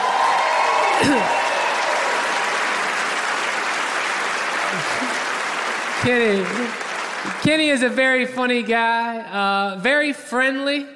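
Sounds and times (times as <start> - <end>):
audience applause: 0.0 - 8.3
speech: 1.0 - 1.4, 6.0 - 6.8, 7.4 - 10.9.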